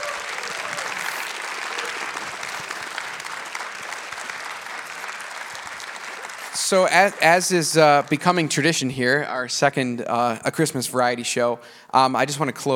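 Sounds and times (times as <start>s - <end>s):
round of applause: 0.0s - 8.8s
speech: 6.7s - 12.7s.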